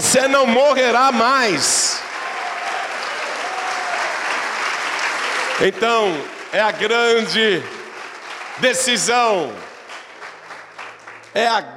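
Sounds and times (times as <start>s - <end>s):
audience applause: 0.0s - 11.7s
speech: 0.1s - 2.0s, 5.6s - 7.8s, 8.6s - 9.7s, 11.4s - 11.7s.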